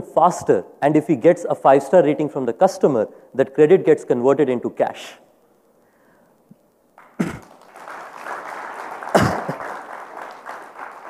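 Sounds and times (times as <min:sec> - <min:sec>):
speech: 0:00.2 - 0:05.2
audience applause: 0:07.0 - 0:11.0.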